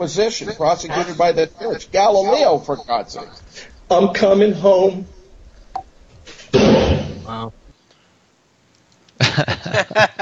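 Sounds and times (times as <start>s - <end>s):
laughter: 0.0s - 4.2s, 9.2s - 10.2s
speech: 0.0s - 5.1s, 7.3s - 7.6s, 9.4s - 10.2s
fake gunshot sound effect: 6.5s - 7.3s.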